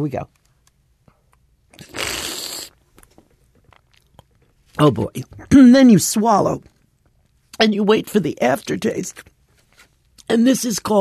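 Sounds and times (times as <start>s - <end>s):
speech: 0.0s - 0.4s, 4.8s - 6.8s, 7.6s - 9.3s, 10.3s - 10.9s
person slurping olive oil while tasting: 1.7s - 2.8s.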